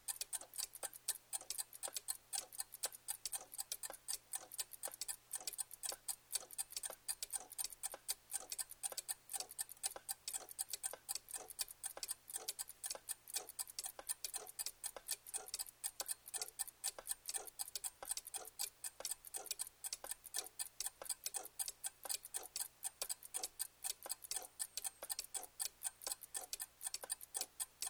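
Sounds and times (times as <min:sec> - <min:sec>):
several mantel clocks ticking: 0:00.1 - 0:27.8.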